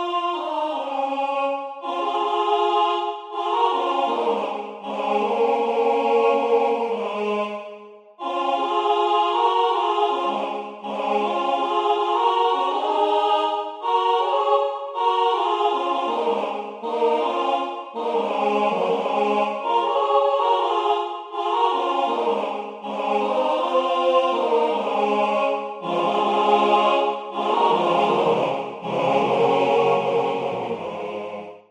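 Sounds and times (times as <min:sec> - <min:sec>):
MIDI SATB choral music: 0:00.0 - 0:31.6.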